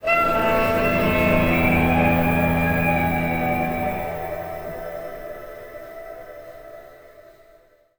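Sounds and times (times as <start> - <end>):
cursed bugle: 0.0 - 5.7.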